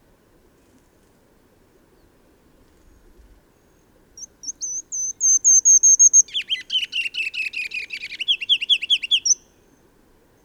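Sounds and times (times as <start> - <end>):
bird singing high thin whistles and buzzy trill: 4.2 - 9.5.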